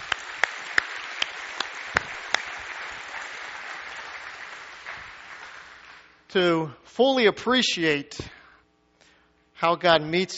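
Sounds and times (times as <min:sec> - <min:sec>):
audience applause: 0:00.0 - 0:06.1
speech: 0:06.3 - 0:08.4, 0:09.6 - 0:10.3.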